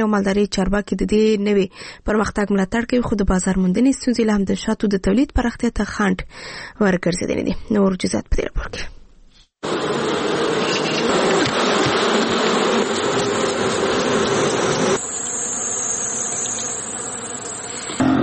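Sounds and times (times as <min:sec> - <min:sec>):
speech: 0:00.0 - 0:09.0, 0:09.6 - 0:10.1
honey bees buzzing at a bee farm in Helmand province: 0:09.6 - 0:18.2.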